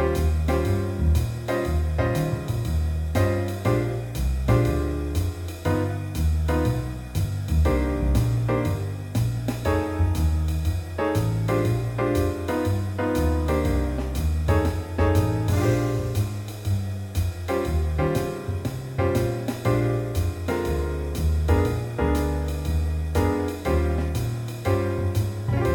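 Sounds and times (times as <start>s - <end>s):
blues music in B flat at 120 bpm: 0.0s - 25.7s.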